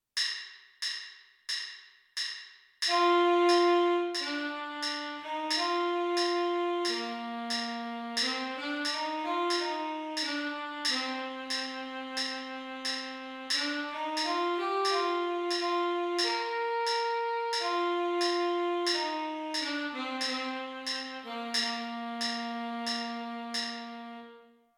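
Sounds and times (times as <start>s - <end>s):
tenor saxophone: 2.9s - 24.7s.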